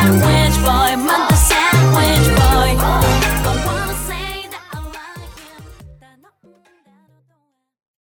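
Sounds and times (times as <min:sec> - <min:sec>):
song chorus: 0:00.0 - 0:06.0.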